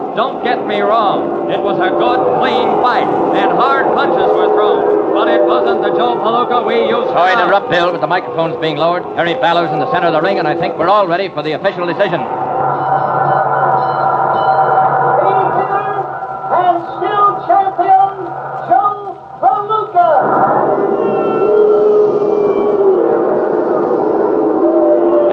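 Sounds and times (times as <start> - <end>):
boxing crowd booing: 0.0 - 25.3
speech: 0.2 - 12.8.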